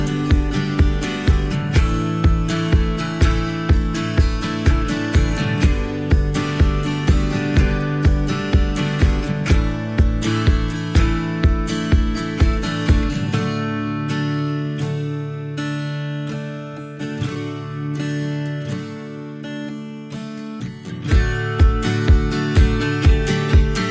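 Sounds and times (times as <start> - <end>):
reduced drums: 0.0 - 13.3, 21.1 - 23.8
guitar accompaniment: 0.0 - 23.8.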